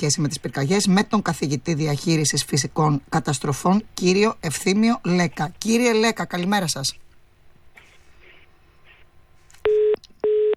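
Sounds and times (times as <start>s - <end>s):
speech: 0.0s - 7.0s
telephone busy tone after call dropped: 9.7s - 10.5s.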